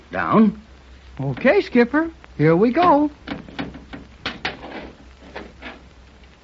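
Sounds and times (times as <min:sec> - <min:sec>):
speech: 0:00.1 - 0:00.6, 0:01.2 - 0:03.4
stuck wooden door grinding and scraping as it is forced downward: 0:02.8 - 0:05.9.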